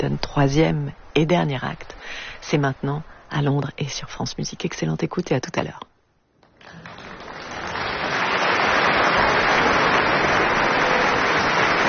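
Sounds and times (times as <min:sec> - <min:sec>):
speech: 0:00.0 - 0:05.9
opera house audience applause at Covent Garden: 0:06.5 - 0:11.8.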